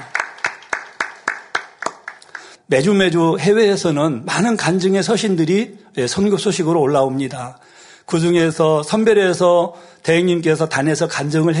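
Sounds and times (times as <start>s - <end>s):
audience clapping: 0.0s - 2.6s
speech: 2.7s - 11.5s.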